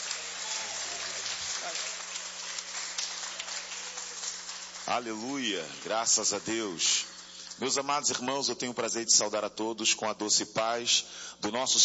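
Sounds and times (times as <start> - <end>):
crowd clapping hands: 0.0 - 7.6
speech: 4.9 - 11.8.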